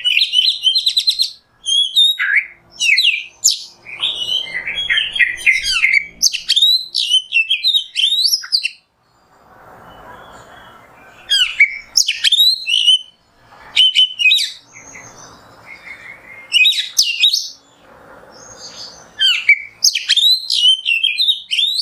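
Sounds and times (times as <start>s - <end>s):
Oriental magpie-robin whistling sharp rapid phrases: 0.0s - 8.8s, 11.2s - 15.2s, 15.8s - 17.6s, 19.2s - 21.8s.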